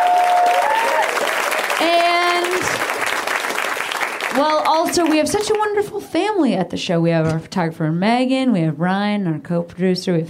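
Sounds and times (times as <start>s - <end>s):
audience clapping: 0.0s - 5.7s
speech: 4.4s - 10.2s.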